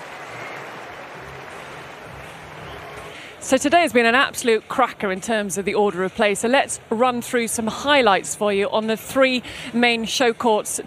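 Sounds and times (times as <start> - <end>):
crowd applauding: 0.0 - 3.4
speech: 3.5 - 10.8.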